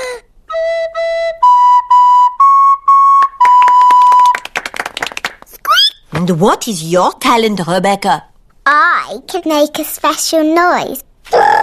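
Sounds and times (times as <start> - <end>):
recorder playing a simple tune: 0.5 - 4.4
speech: 6.3 - 8.3, 9.1 - 11.1.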